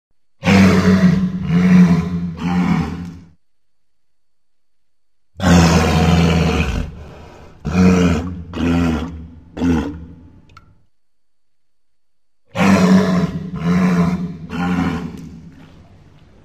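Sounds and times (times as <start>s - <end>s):
walrus roaring: 0.4s - 3.3s, 5.4s - 10.4s, 12.5s - 15.4s.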